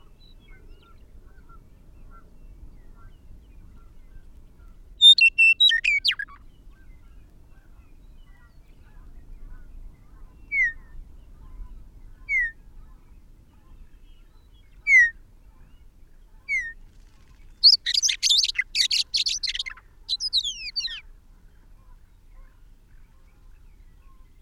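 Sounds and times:
bird song: 0.0 - 24.4.

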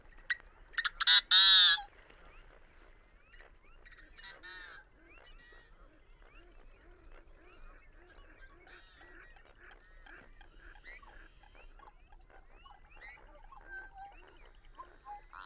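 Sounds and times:
busy chorus of nasal honking bird calls: 0.8 - 1.9.

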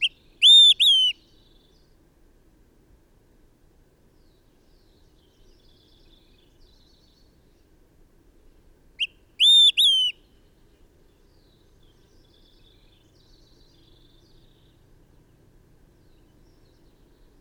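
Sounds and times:
bird singing: 0.0 - 2.0, 4.2 - 7.7, 9.0 - 17.3.

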